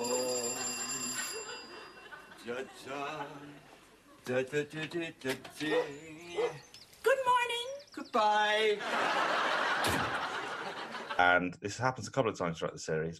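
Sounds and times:
front doorbell ringing: 0.0 - 2.5
laughter: 1.0 - 4.5, 8.6 - 11.3
speech: 2.4 - 6.7, 8.1 - 10.1, 11.2 - 13.1.

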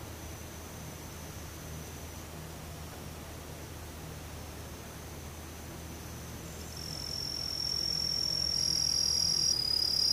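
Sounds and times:
daytime insects buzzing: 0.0 - 10.1.

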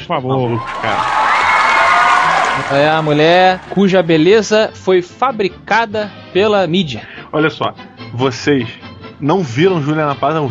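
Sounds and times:
speech: 0.1 - 1.3, 2.6 - 10.4
applause and cheering: 0.5 - 4.7.

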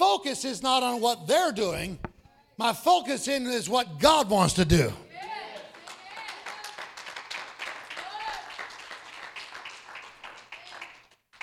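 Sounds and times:
speech: 0.2 - 5.3
people cheering: 5.1 - 9.4, 10.5 - 11.0
audience clapping: 5.3 - 11.4.

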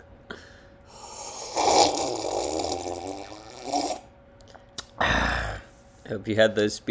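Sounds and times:
slurping thick eggnog: 1.1 - 4.0
speech: 6.1 - 6.8.

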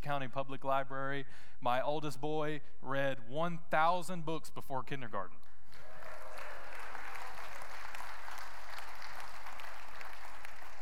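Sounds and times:
speech: 0.0 - 5.9
audience applause: 5.8 - 10.8.

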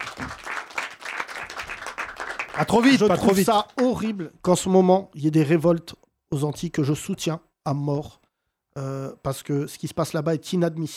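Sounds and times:
audience applauding: 0.0 - 3.4
speech: 2.6 - 8.2, 8.8 - 10.9.

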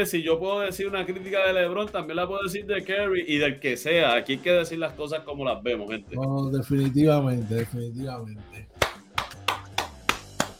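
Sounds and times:
speech: 0.0 - 8.7
hand clapping: 6.8 - 7.8, 8.6 - 10.5.

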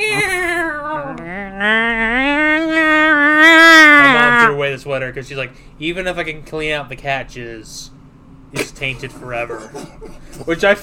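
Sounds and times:
voice imitating a cat's mating yowl: 0.0 - 4.6
speech: 4.8 - 10.8.

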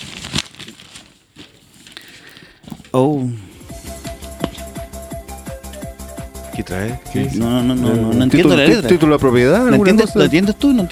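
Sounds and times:
paper envelope being ripped open: 0.0 - 3.2
speech: 2.9 - 3.4, 6.7 - 10.9.

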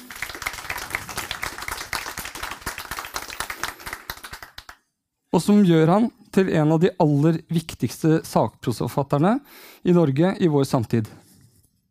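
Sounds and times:
audience applause: 0.0 - 4.8
speech: 5.3 - 11.2.

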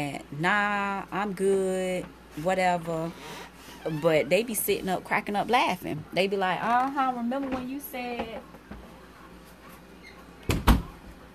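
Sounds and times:
speech: 0.0 - 8.6
bathroom door closing: 10.0 - 11.0.

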